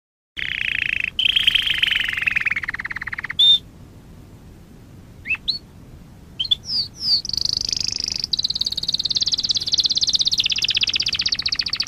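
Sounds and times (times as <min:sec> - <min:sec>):
Waterslager canary singing a high pulsed trill: 0:00.4 - 0:03.6, 0:05.2 - 0:05.6, 0:06.4 - 0:11.8.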